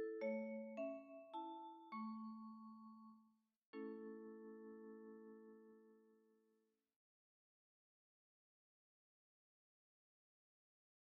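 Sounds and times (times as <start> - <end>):
lullaby for solo viola and ensemble: 0.0 - 6.5.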